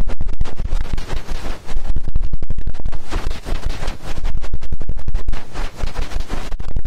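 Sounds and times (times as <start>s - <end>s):
ear cleaning massage scratching and rubbing: 0.2s - 2.1s, 2.9s - 4.6s, 5.2s - 6.7s.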